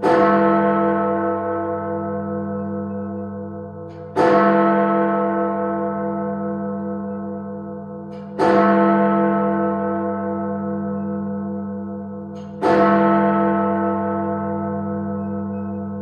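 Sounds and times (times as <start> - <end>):
clock tower bell chimes striking, exterior: 0.0 - 16.0.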